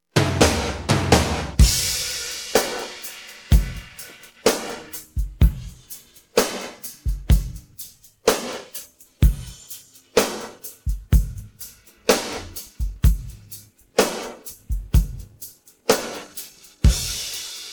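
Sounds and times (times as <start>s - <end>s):
drum pattern: 0.1s - 17.7s.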